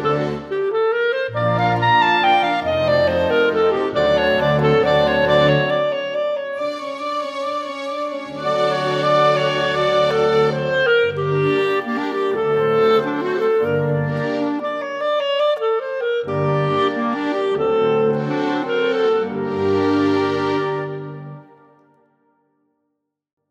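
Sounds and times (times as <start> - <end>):
clarinet performance: 0.0 - 22.2.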